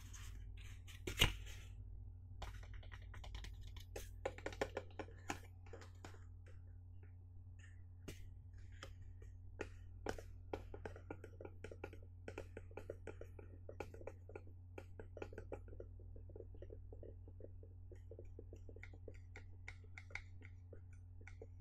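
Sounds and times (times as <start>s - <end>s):
steady low hum: 0.0s - 21.5s
fingers tapping and knocking on a box: 2.4s - 6.2s, 9.6s - 21.5s.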